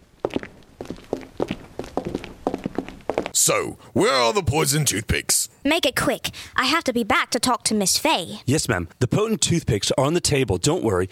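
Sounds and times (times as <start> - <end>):
footsteps of a detective pair and a police officer walking up to a body: 0.0 - 3.4
speech: 3.4 - 11.0.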